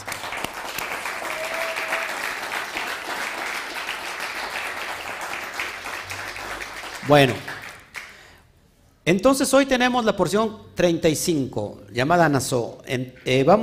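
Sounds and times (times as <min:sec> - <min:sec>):
loud applause: 0:00.0 - 0:08.2
speech: 0:07.1 - 0:07.5, 0:09.1 - 0:13.6.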